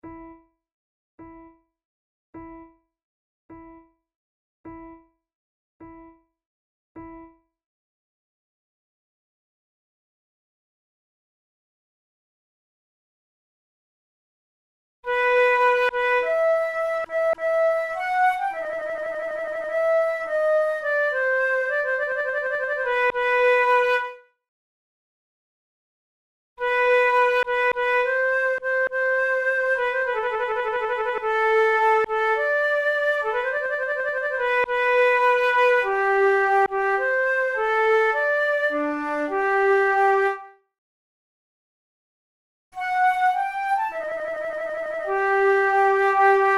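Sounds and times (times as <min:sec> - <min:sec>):
two flutes playing a prelude: 0:15.1 - 0:24.2, 0:26.6 - 0:40.6, 0:42.8 - 0:46.5.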